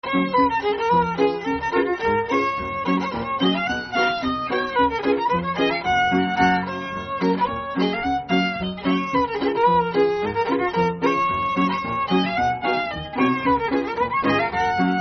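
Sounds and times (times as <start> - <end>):
waltz music: 0.0 - 15.0.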